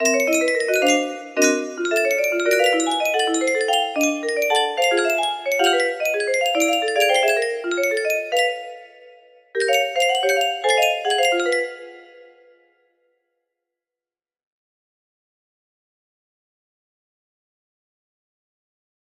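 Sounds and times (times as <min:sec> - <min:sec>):
music box: 0:00.0 - 0:12.5.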